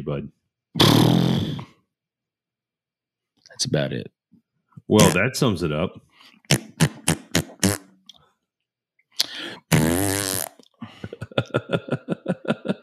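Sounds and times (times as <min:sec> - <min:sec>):
speech: 0:00.0 - 0:01.7, 0:03.5 - 0:04.2, 0:04.9 - 0:06.7, 0:11.5 - 0:12.1
person making fart noises with mouth: 0:00.8 - 0:01.8, 0:05.0 - 0:05.2, 0:06.4 - 0:08.0, 0:09.6 - 0:10.6
laughter: 0:10.8 - 0:12.8.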